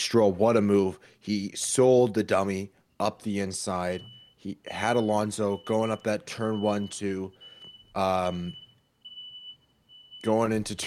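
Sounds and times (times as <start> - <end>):
speech: 0.1 - 7.4, 8.0 - 8.6, 10.2 - 10.8
fire alarm tone: 2.3 - 10.8.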